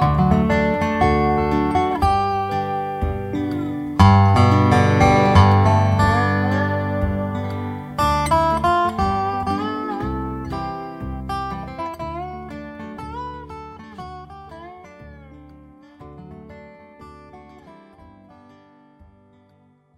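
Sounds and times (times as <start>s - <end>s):
steel guitar strings in EBDGBD tuning: 0.0s - 17.8s.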